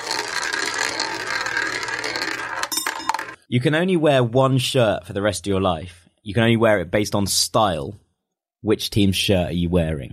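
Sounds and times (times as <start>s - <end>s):
prize wheel being spun, clicking: 0.0s - 3.4s
speech: 3.5s - 8.0s, 8.6s - 10.1s.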